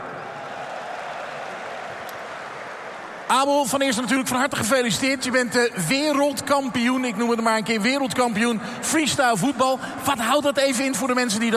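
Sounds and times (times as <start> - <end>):
audience applause: 0.0 - 3.6
speech: 3.3 - 11.5.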